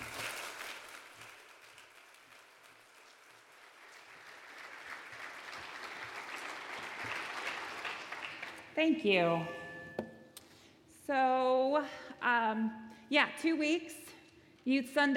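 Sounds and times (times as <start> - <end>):
audience applause: 0.0 - 8.8
speech: 8.8 - 9.6, 11.1 - 15.1.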